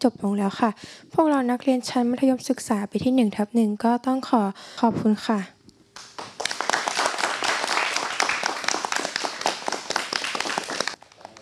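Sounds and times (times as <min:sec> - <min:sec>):
speech: 0:00.0 - 0:05.6
students clapping: 0:06.0 - 0:11.4.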